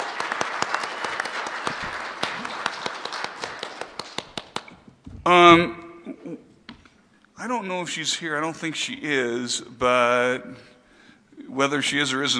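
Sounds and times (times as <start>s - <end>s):
audience applause: 0.0s - 4.8s
speech: 5.2s - 6.4s, 7.4s - 10.7s, 11.6s - 12.3s.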